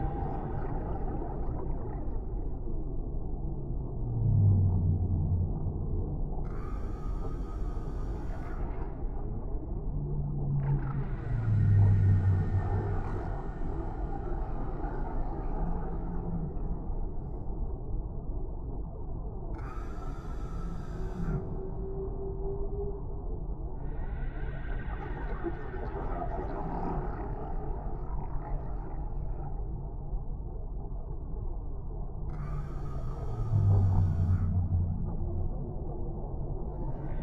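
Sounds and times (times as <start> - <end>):
underwater whale: 0.0 - 37.2.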